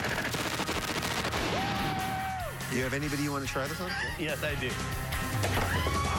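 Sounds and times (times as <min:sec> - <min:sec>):
Russian machine gun firing: 0:00.0 - 0:01.8
speech: 0:02.7 - 0:06.0.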